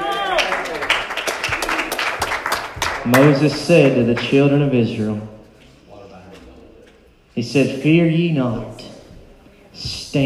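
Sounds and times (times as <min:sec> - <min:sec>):
loud rising cry: 0:00.0 - 0:00.8
audience clapping: 0:00.0 - 0:04.6
speech: 0:03.1 - 0:05.4, 0:07.4 - 0:08.8, 0:09.8 - 0:10.2.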